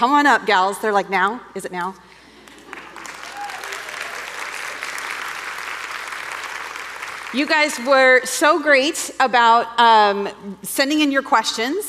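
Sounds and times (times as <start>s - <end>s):
speech: 0.0s - 2.1s, 7.3s - 11.8s
audience applauding a panel of women: 2.4s - 7.7s.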